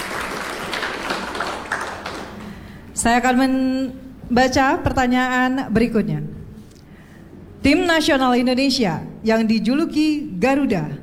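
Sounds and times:
quiz contest audience applause for a team: 0:00.0 - 0:03.9
speech: 0:03.0 - 0:06.3, 0:07.6 - 0:11.0.

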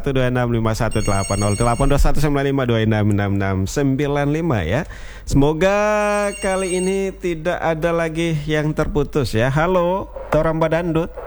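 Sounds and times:
speech: 0:00.0 - 0:11.2
telephone ringing as a listener calls in to a radio show: 0:00.8 - 0:02.6, 0:05.6 - 0:07.9.

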